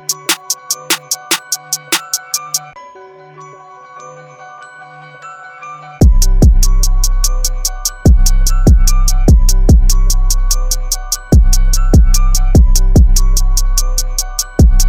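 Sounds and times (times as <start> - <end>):
instrumental music: 0.0 - 2.8, 6.0 - 14.8.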